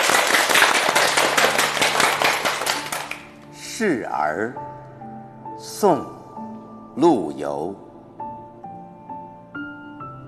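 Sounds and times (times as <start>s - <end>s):
crowd applauding: 0.0s - 3.4s
speech: 3.8s - 4.8s, 5.6s - 6.2s, 7.0s - 7.8s.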